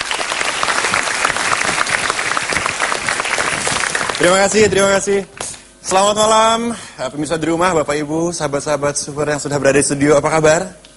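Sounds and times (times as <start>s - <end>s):
audience applause: 0.0s - 4.6s
speech: 4.2s - 10.9s.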